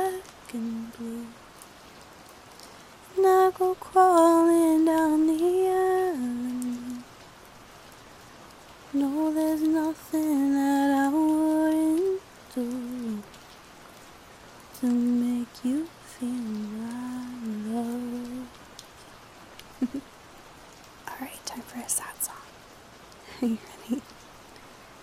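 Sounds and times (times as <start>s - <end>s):
soft singing: 0.0s - 1.4s, 3.0s - 7.2s, 8.9s - 13.4s, 14.7s - 18.6s, 21.0s - 22.5s, 23.3s - 24.1s
rain: 0.0s - 25.0s.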